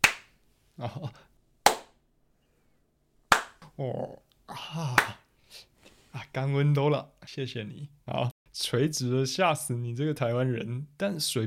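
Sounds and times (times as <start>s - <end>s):
hands clapping away from microphone: 0.0s - 0.4s, 1.7s - 2.0s, 3.3s - 3.7s, 5.0s - 5.2s
speech: 0.8s - 1.3s, 3.8s - 11.4s.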